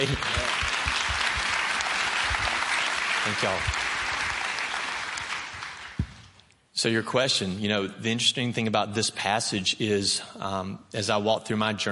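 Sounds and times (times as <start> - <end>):
speech: 0.0 - 0.6, 3.2 - 3.9, 6.8 - 11.8
audience clapping: 0.0 - 6.4.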